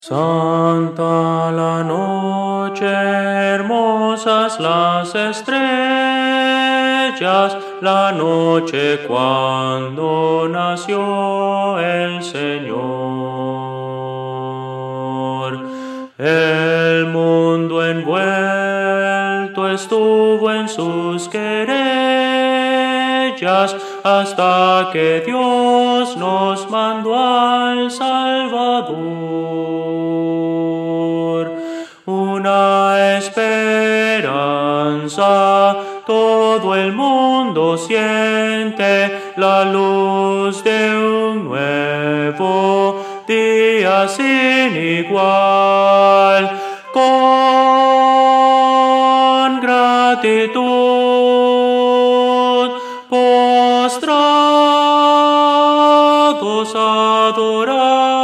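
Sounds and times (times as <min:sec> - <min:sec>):
soprano singing: 0:00.0 - 0:58.2.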